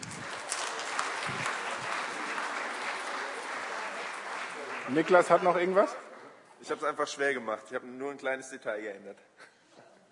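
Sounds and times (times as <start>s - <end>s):
audience applause: 0.0s - 6.0s
speech: 4.9s - 9.5s.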